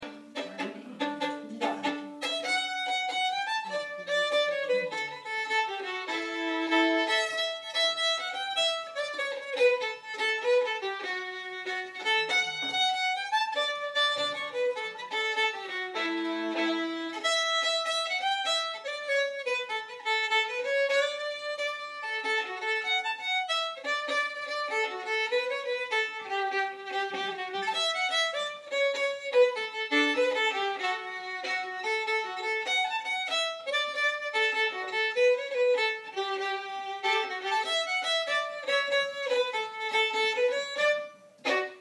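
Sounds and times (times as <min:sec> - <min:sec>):
Canadian jig music: 0:00.0 - 0:41.8.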